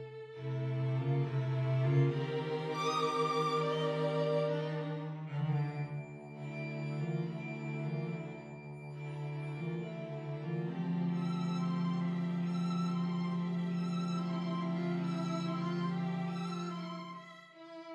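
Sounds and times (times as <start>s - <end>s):
string octet playing: 0.6s - 17.2s.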